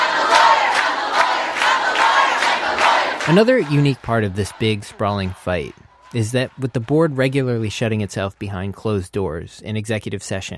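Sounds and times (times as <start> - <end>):
large crowd of students chanting in unison inside a gymnasium: 0.0 - 6.7
speech: 3.3 - 10.5.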